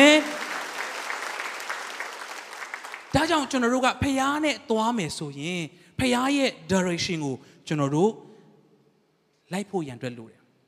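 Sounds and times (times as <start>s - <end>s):
church congregation applause during a Sunday afternoon sermon: 0.0s - 3.6s
speech: 3.1s - 8.3s, 9.5s - 10.4s.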